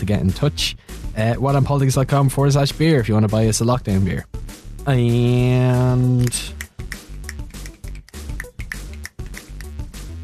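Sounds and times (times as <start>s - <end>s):
speech: 0.0s - 6.6s
one hand clapping: 5.8s - 10.2s
finger clicking: 6.1s - 10.2s.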